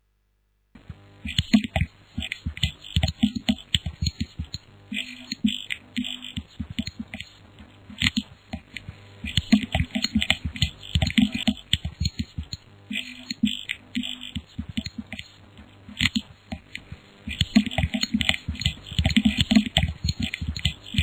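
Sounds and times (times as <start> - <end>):
noise beats instrumental: 0.8 - 21.0.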